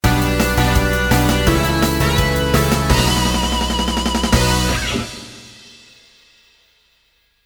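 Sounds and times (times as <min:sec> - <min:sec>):
game stage complete jingle: 0:00.0 - 0:05.7.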